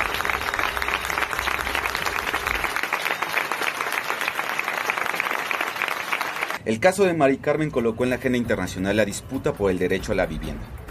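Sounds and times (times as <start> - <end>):
crowd ovation in Plaza del Sol: 0.0 - 6.6
speech: 6.7 - 10.7.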